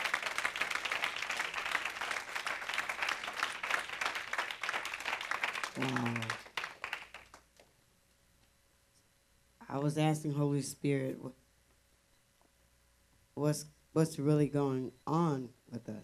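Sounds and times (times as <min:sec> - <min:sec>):
audience clapping hands: 0:00.0 - 0:07.7
speech: 0:05.8 - 0:06.4, 0:09.7 - 0:11.4, 0:13.4 - 0:16.0.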